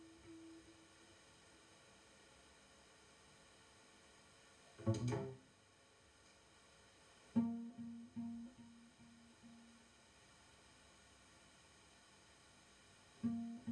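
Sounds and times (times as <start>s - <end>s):
two cellos at a birthday concert: 4.8s - 5.4s, 7.4s - 9.6s, 13.2s - 13.7s.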